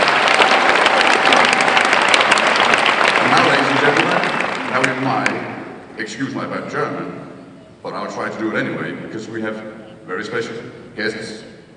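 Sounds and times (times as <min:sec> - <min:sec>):
audience applause: 0:00.0 - 0:05.5
speech: 0:05.0 - 0:07.2, 0:07.8 - 0:11.5.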